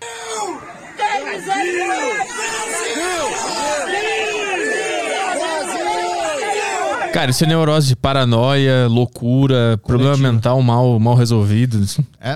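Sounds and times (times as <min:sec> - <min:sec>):
crowd shouting: 0:00.0 - 0:07.4
speech: 0:01.3 - 0:03.0, 0:07.2 - 0:12.3.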